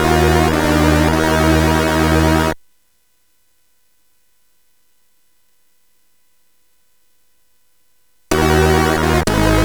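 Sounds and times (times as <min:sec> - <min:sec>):
SID CSG8580R5 chip music: 0:00.0 - 0:02.6, 0:08.3 - 0:09.6.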